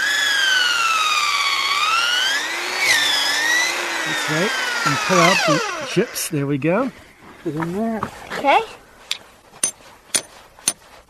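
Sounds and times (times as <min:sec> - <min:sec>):
power drill boring into a tree: 0:00.0 - 0:06.3
speech: 0:04.1 - 0:08.8.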